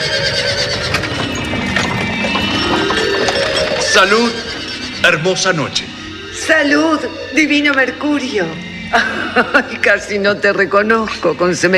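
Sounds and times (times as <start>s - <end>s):
hooves of two horses pulling a chariot: 0.0s - 4.8s
speech: 4.0s - 5.9s, 6.5s - 11.7s
laughter: 8.9s - 10.2s.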